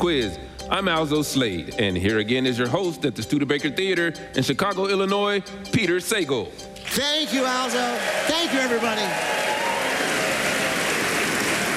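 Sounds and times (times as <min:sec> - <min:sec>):
speech: 0:00.0 - 0:09.7
theater audience applauding: 0:06.8 - 0:11.7.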